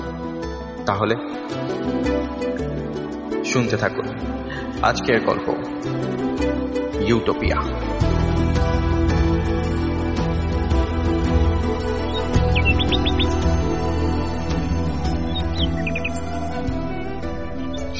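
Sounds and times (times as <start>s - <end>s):
steady, droning musical background: 0.0s - 17.9s
speech: 0.9s - 9.7s
bird chirping early in the morning around a shared lodging: 11.8s - 17.9s.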